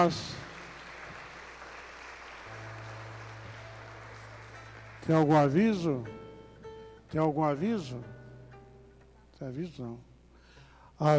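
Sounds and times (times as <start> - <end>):
speech: 0.0 - 0.4, 5.0 - 6.2, 7.1 - 8.1, 9.4 - 10.1, 11.0 - 11.1
applause at a Catholic prayer gathering: 0.0 - 5.6.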